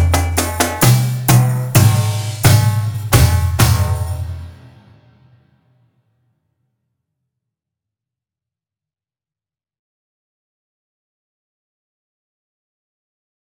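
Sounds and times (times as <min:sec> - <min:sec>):
junior drumline playing: 0:00.0 - 0:04.6.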